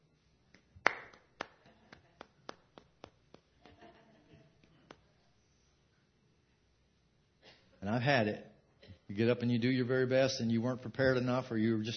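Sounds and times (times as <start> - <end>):
slow half-hearted sympathy clapping: 0.5 - 3.9
speech: 7.8 - 8.5, 9.1 - 11.9.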